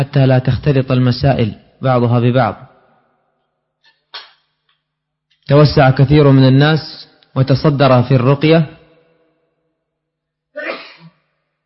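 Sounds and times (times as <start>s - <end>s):
speech: 0.0s - 2.7s, 5.5s - 8.8s
loud sharp sneeze: 10.6s - 11.4s.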